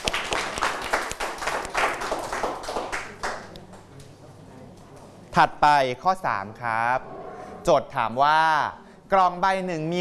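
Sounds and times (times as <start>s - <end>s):
classroom applause: 0.0s - 3.6s
speech: 5.4s - 9.9s.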